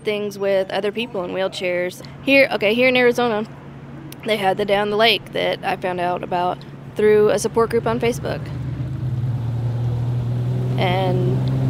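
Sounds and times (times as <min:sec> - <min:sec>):
speech: 0:00.0 - 0:03.6, 0:04.2 - 0:08.6, 0:10.8 - 0:11.5
jet ski engine on Lake Pleasant: 0:07.0 - 0:11.6.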